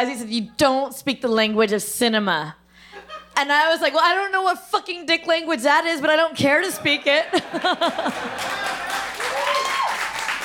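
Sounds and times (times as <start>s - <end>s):
speech: 0.0s - 2.6s, 3.4s - 8.7s
laughter: 6.7s - 9.4s
audience clapping: 7.4s - 10.4s.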